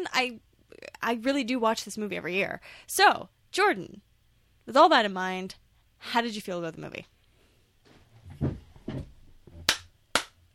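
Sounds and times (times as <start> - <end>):
speech: 0.0 - 4.1, 4.7 - 7.1
clapping: 9.7 - 10.4.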